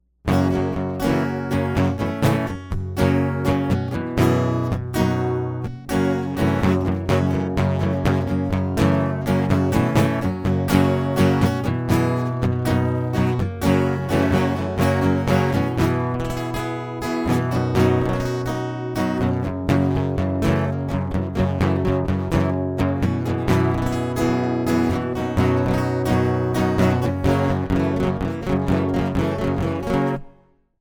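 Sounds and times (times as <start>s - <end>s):
acoustic music: 0.3s - 30.4s.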